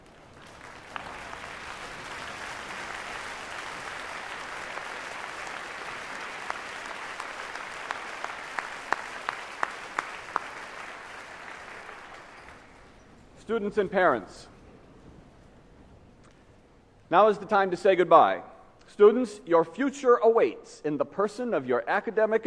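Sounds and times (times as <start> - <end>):
audience applause: 0.0 - 13.1
speech: 13.5 - 14.5, 17.1 - 22.4.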